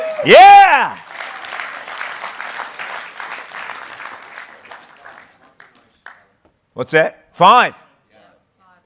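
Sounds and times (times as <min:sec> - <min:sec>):
audience clapping: 0:00.0 - 0:06.5
speech: 0:00.2 - 0:01.0, 0:06.8 - 0:07.8.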